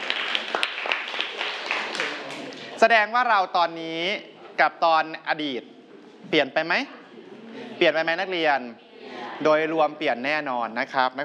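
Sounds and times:
students clapping for two classmates: 0.0 - 2.8
speech: 2.8 - 7.0, 7.8 - 8.8, 9.4 - 11.2.

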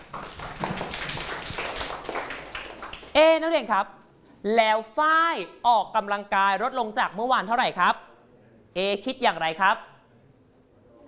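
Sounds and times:
students clapping for a classmate: 0.0 - 3.2
speech: 3.3 - 8.1, 8.7 - 9.9.

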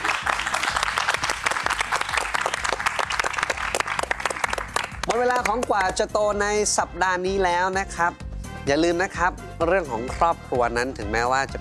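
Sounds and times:
audience applause: 0.0 - 5.9
speech: 5.2 - 11.5.

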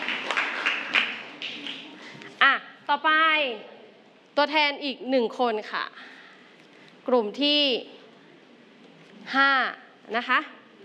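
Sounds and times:
classroom students applauding a group of classmates: 0.0 - 2.2
speech: 2.9 - 3.8, 4.4 - 6.2, 7.1 - 8.0, 9.2 - 10.6.

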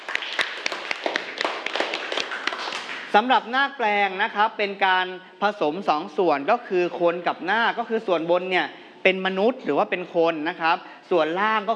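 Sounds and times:
students clapping for themselves: 0.0 - 3.2
speech: 3.1 - 11.7.

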